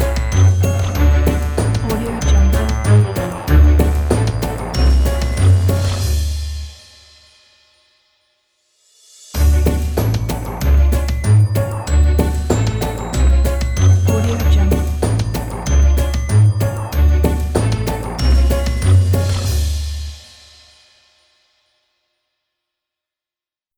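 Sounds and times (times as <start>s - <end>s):
uplifting merry logo jingle: 0.0s - 6.9s, 9.4s - 20.5s.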